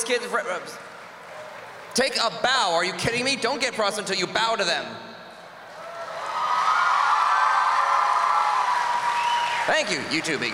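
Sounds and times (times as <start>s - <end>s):
speech: 0.1s - 0.9s, 2.0s - 5.1s, 9.7s - 10.5s
audience applause: 0.9s - 2.0s, 5.8s - 10.5s.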